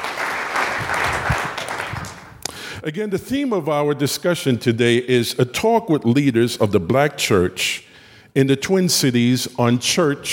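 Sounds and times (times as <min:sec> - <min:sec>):
audience applause for panelists: 0:00.0 - 0:02.4
speech: 0:02.8 - 0:10.3.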